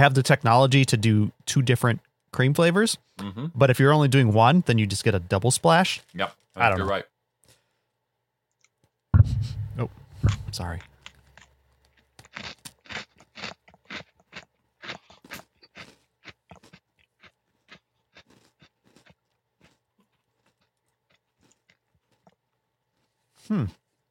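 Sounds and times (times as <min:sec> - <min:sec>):
speech: 0:00.0 - 0:07.1, 0:09.8 - 0:10.9, 0:23.5 - 0:23.8
biting and crunching a golden Oreo cookie: 0:10.6 - 0:24.0.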